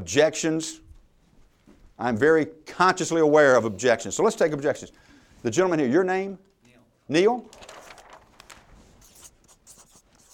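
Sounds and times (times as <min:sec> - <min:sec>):
speech: 0:00.0 - 0:00.8, 0:02.0 - 0:06.5, 0:07.1 - 0:07.8
writing on a flip chart: 0:09.0 - 0:10.3.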